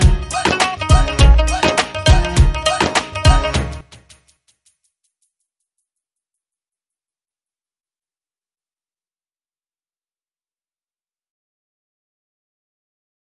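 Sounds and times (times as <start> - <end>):
instrumental dance floor music: 0.0 - 4.2.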